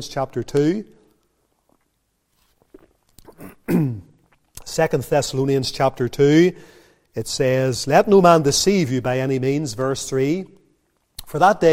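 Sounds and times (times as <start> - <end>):
speech: 0.0 - 1.0, 4.8 - 10.6, 11.3 - 11.7
person sipping water: 1.0 - 4.7
swallow: 1.5 - 4.6.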